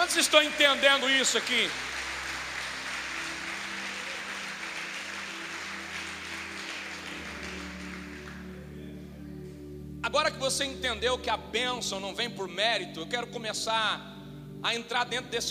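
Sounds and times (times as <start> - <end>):
applause: 0.0 - 8.6
speech: 0.1 - 2.0, 10.2 - 15.4.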